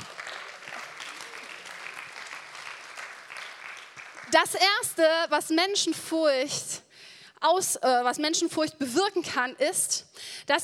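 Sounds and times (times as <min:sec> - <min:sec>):
audience clapping: 0:00.0 - 0:04.7
speech: 0:04.3 - 0:06.8, 0:07.4 - 0:10.6.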